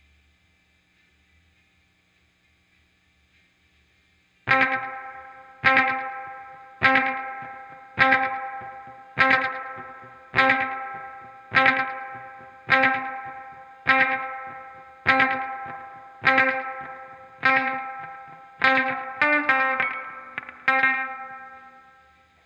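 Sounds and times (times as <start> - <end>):
guitar volume swell: 4.5 - 22.1.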